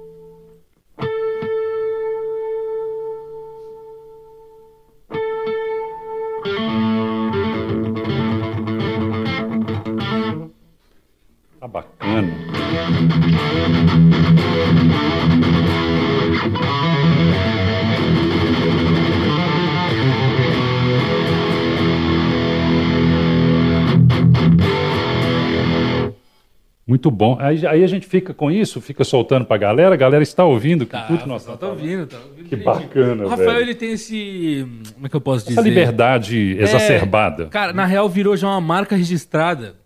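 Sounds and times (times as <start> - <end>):
untuned heavily distorted electric guitar playing: 0.0 - 3.6, 5.1 - 10.5, 12.0 - 26.2
speech: 27.0 - 39.8.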